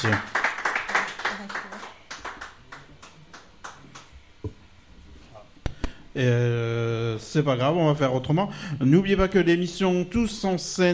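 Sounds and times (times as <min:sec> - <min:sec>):
speech: 0:00.0 - 0:00.4, 0:06.2 - 0:10.9
audience applause: 0:00.0 - 0:04.0.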